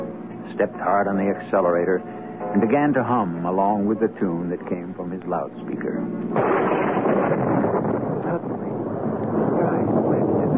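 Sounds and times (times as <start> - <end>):
speech: 0.6 - 7.2
thunder rumbling: 6.3 - 10.5.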